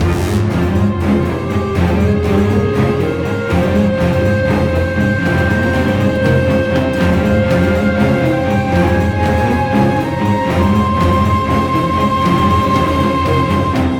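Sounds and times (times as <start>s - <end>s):
string instrument: 0.0s - 13.9s.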